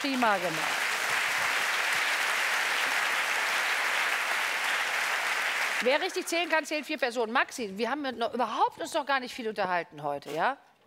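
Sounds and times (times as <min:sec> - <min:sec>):
speech: 0:00.0 - 0:00.8, 0:05.8 - 0:10.7
applause: 0:00.0 - 0:07.0.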